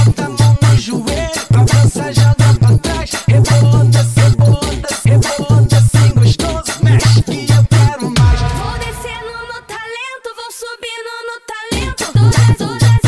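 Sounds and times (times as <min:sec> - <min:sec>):
funk bass: 0:00.0 - 0:08.9, 0:11.8 - 0:13.0.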